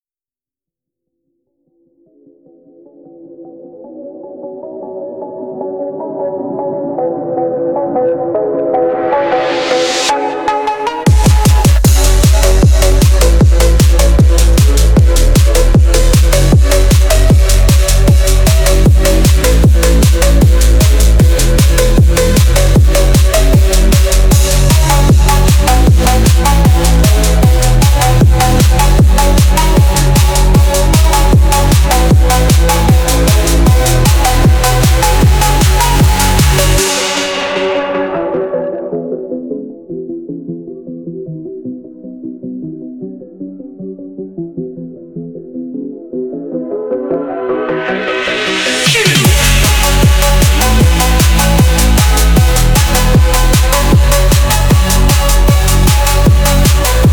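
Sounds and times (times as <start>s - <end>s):
phonk house music: 4.7s - 39.1s, 47.0s - 57.1s.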